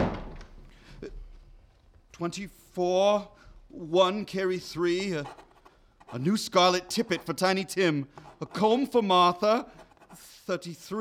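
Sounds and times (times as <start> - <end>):
door being closed: 0.0 - 0.6
speech: 1.0 - 1.2, 2.2 - 5.4, 6.1 - 10.9.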